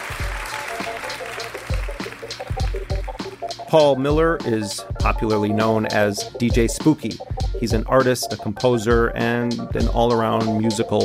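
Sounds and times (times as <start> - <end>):
audience applause: 0.0 - 3.5
loud music with a booming bass beat: 1.7 - 11.0
speech: 3.7 - 11.0.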